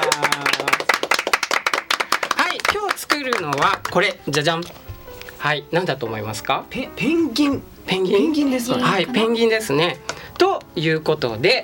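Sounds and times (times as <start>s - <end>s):
audience clapping: 0.0s - 4.6s
speech: 3.2s - 11.6s.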